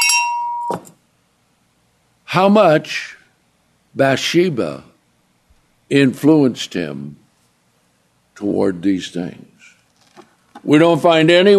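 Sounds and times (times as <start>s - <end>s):
bell ringing: 0.0s - 0.9s
speech: 0.7s - 0.9s, 2.3s - 3.2s, 4.0s - 4.9s, 5.9s - 7.2s, 8.4s - 9.5s, 10.6s - 11.5s.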